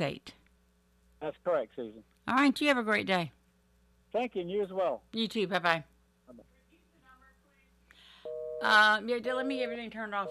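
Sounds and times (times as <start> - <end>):
speech: 0.0 - 0.4, 1.2 - 3.4, 4.1 - 6.5, 8.6 - 10.2
telephone line beeping after call ends: 8.2 - 10.2.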